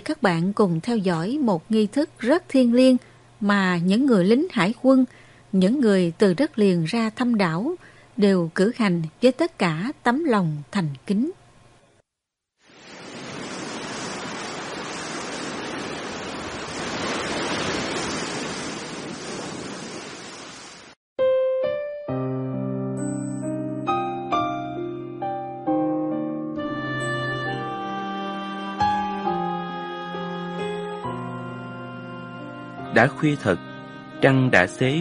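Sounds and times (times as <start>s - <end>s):
speech: 0.0s - 11.4s, 33.0s - 34.9s
calm sea waves at night: 12.6s - 21.0s
soft melodic music with sustained tones: 21.2s - 34.9s.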